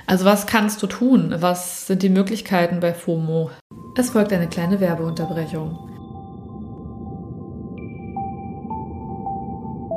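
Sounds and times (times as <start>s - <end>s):
speech: 0.1s - 5.9s
calm ambient music: 3.7s - 9.9s
soft sonar-like pings: 3.7s - 9.9s.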